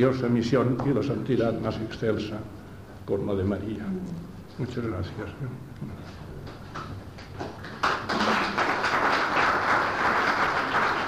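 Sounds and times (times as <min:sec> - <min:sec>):
speech: 0:00.0 - 0:06.2
audience applause: 0:07.4 - 0:11.0.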